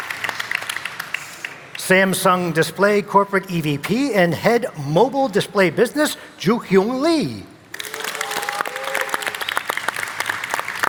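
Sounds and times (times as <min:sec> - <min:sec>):
speech: 0:01.9 - 0:07.5
audience cheering: 0:07.8 - 0:10.8.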